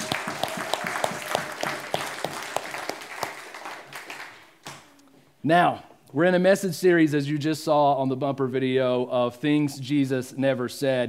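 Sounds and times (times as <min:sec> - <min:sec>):
audience round of applause: 0:00.0 - 0:04.8
speech: 0:05.4 - 0:11.0.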